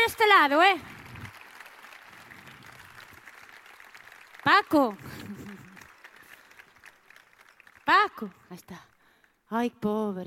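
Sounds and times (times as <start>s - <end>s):
speech: 0.0s - 1.0s, 4.5s - 5.4s, 7.9s - 8.9s, 9.5s - 10.2s
audience applause at a murga competition in Pontevedra: 0.5s - 7.9s.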